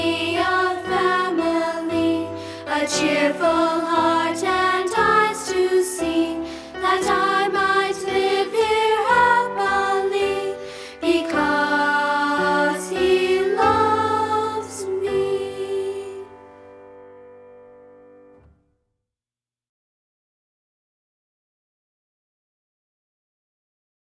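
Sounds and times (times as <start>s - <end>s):
song with words and music: 0.0s - 16.7s.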